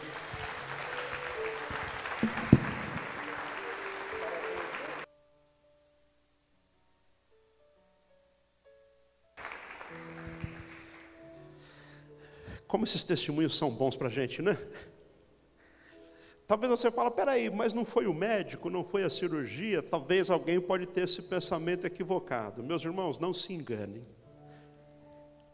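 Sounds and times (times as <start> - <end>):
audience applause: 0.0 - 5.1, 9.4 - 11.3
speech: 12.8 - 15.0, 16.5 - 24.2.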